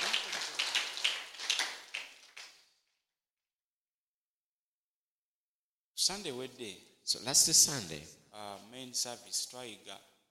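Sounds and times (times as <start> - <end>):
audience clapping: 0.0 - 2.6
speech: 6.0 - 10.1.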